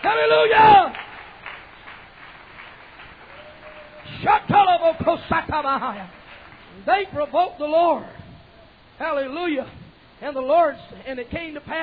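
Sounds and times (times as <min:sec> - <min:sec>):
loud voice shouting: 0:00.0 - 0:01.0
audience clapping hands in a rhythmic beat: 0:00.0 - 0:07.5
speech: 0:00.1 - 0:01.0, 0:04.2 - 0:06.2, 0:06.8 - 0:08.2, 0:09.0 - 0:11.8.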